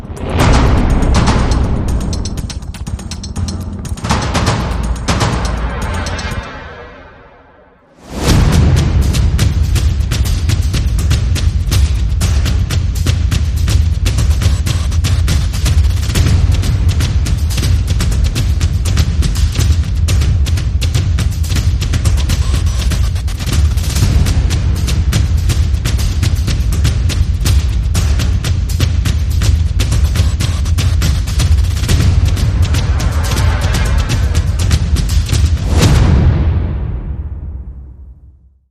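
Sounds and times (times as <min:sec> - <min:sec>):
epic percussion: 0:00.0 - 0:38.6.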